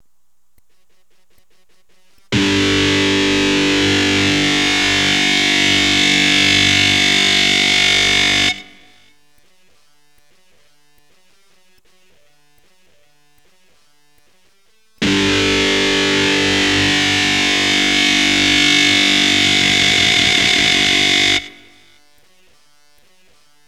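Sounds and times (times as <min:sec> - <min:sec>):
electric guitar power chord: 0:02.3 - 0:09.1, 0:15.0 - 0:21.9.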